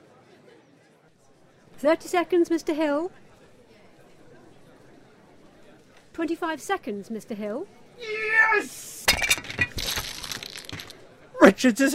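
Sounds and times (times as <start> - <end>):
speech: 1.8 - 3.2, 6.2 - 8.9, 11.4 - 11.9
game board tipping over, pieces clattering: 9.1 - 11.0.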